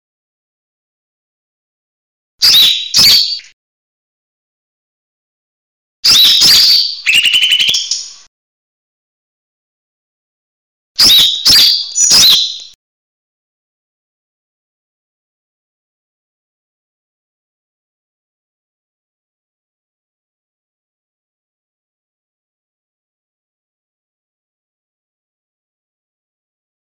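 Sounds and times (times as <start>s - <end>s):
leafbird whistled slurs: 6.1s - 8.2s, 11.0s - 12.8s.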